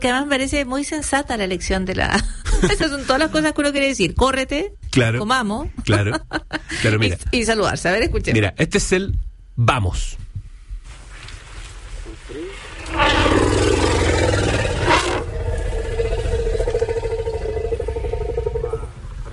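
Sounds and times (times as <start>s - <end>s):
speech: 0.0s - 10.2s
elephant low rumble call: 12.6s - 19.3s.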